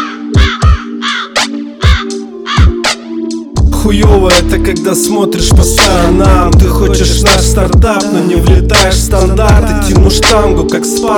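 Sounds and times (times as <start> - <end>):
crow cawing: 0.0 - 2.8
speech: 3.8 - 11.1.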